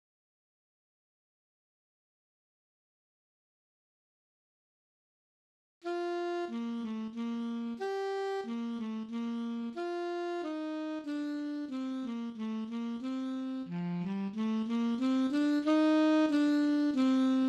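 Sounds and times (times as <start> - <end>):
alto saxophone playing a minuet: 5.8 - 17.4.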